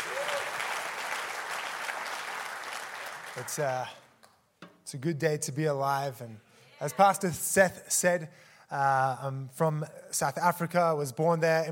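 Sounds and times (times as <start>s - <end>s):
audience applause: 0.0s - 4.0s
speech: 3.4s - 4.0s, 4.9s - 11.7s.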